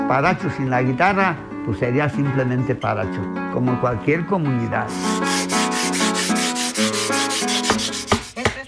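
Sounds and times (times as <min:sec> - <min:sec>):
speech: 0:00.1 - 0:05.3
small stone being rubbed smooth with water: 0:04.9 - 0:08.4.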